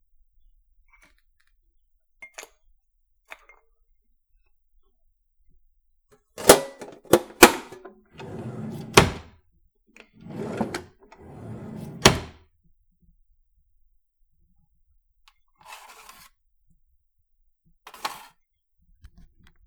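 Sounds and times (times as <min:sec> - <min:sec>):
coffee machine: 0:06.4 - 0:09.3, 0:10.2 - 0:12.4.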